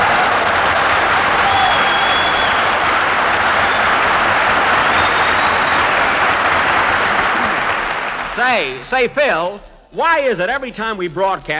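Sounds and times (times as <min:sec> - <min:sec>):
studio audience applause: 0:00.0 - 0:09.1
speech: 0:08.5 - 0:11.5.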